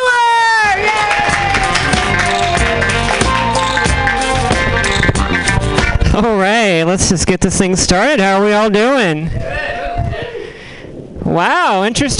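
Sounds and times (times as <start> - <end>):
audience at a stand-up comedy show applauding and cheering: 0.0 - 6.0
speech: 6.2 - 9.8, 11.2 - 12.1.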